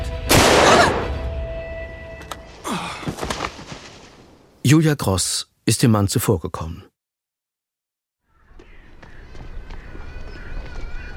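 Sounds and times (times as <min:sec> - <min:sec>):
rifle shot: 0:00.3 - 0:01.2
speech: 0:04.6 - 0:06.9.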